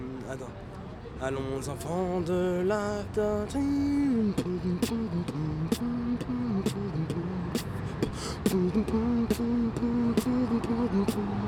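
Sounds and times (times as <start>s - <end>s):
speech: 0.3s - 11.4s
man beatboxing: 4.2s - 11.4s
man humming a melody: 4.2s - 11.4s.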